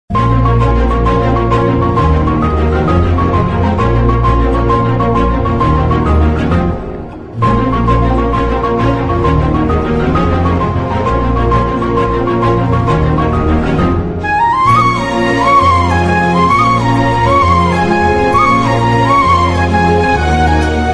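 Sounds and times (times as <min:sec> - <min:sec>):
romantic background music: 0:00.1 - 0:20.9.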